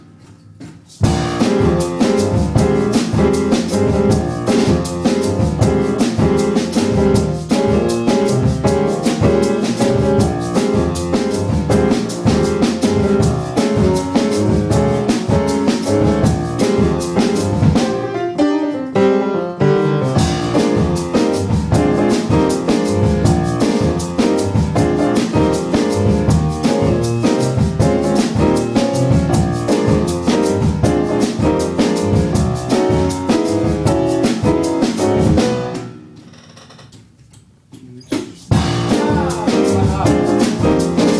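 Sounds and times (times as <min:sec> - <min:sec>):
blues boogaloo music: 0:00.0 - 0:36.2, 0:37.9 - 0:41.1.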